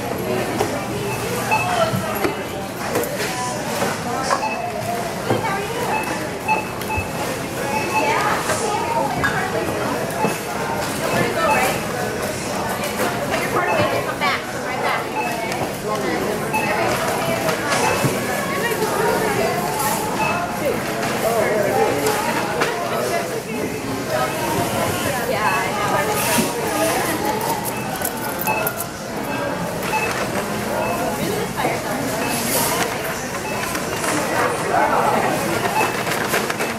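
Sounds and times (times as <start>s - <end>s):
grocery store noise: 0.0s - 36.7s.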